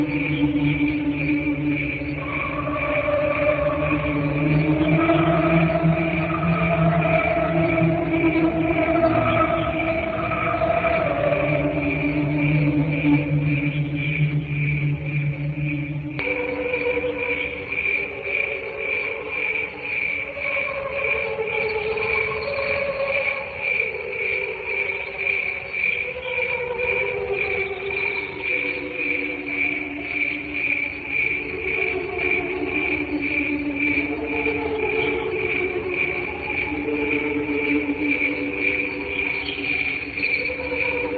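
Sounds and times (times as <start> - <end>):
deep steady hum: 0.0 - 16.3
cricket song: 0.0 - 41.1
low wavering hum-like tones: 0.0 - 41.1.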